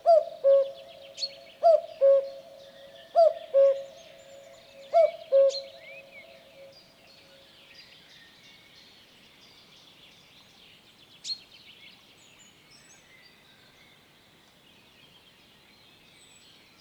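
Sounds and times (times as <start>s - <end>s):
common cuckoo calling a clear low cu-coo: 0.0s - 6.7s.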